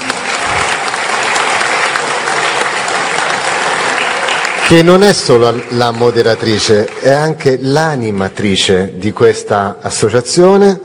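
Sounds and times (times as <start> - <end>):
audience applause: 0.0 - 8.7
speech: 4.7 - 10.8.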